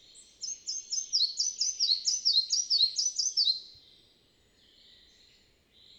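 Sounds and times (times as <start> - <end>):
red-breasted flycatcher singing in the Bavarian Forest, Germany: 0.4 - 3.6.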